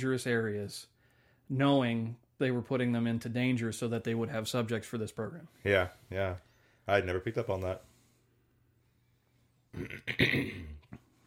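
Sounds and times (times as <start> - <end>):
speech: 0.0 - 7.9, 9.7 - 10.8
person with seasonal allergies clearing throat: 9.7 - 11.0.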